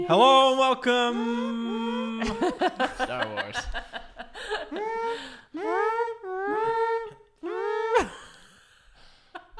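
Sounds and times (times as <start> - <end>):
speech: 0.1 - 1.6, 2.2 - 5.8
laughter: 0.8 - 9.5
person imitating a siren with their voice: 0.9 - 2.4, 5.6 - 8.0.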